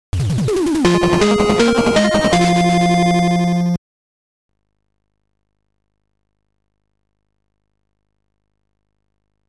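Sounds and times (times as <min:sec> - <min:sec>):
fanfare: 0:00.2 - 0:03.8.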